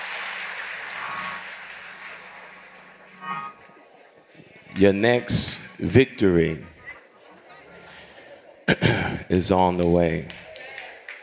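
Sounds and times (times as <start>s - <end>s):
audience hand clapping in praise: 0.0s - 3.5s, 9.9s - 11.2s
speech: 4.8s - 6.7s, 9.3s - 10.4s.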